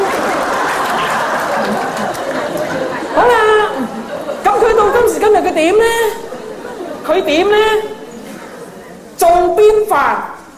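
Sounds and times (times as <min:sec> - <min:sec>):
audience clapping hands: 0:00.0 - 0:04.4
laughter: 0:00.0 - 0:09.2
speech: 0:05.6 - 0:06.2, 0:07.1 - 0:07.9, 0:09.7 - 0:10.3.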